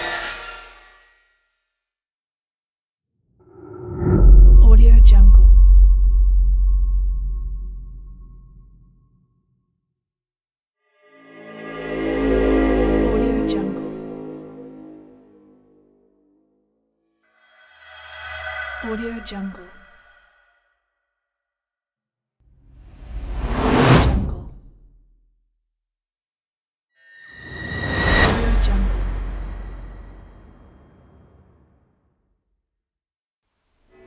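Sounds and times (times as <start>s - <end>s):
trailer sound effects pack: 3.4s - 8.8s, 11.2s - 16.6s, 22.7s - 24.7s, 27.3s - 31.9s.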